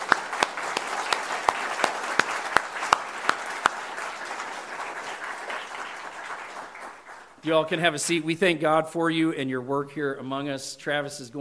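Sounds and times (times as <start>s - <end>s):
audience applause: 0.0s - 7.4s
speech: 7.4s - 11.4s.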